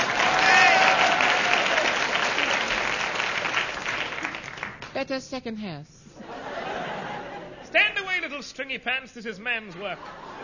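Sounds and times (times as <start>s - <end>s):
audience applause: 0.0s - 4.9s
speech: 5.0s - 6.0s, 7.7s - 10.2s
laughter: 6.2s - 8.0s, 9.8s - 10.4s.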